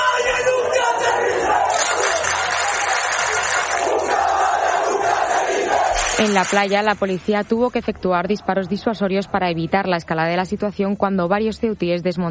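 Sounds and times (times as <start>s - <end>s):
large crowd shouting a rallying battle cry: 0.0s - 6.7s
speech: 6.2s - 12.2s.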